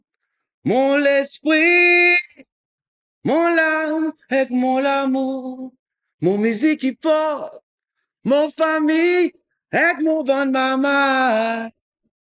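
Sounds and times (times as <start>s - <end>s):
a cappella singing: 0.6s - 2.5s, 3.2s - 7.6s, 8.3s - 11.8s.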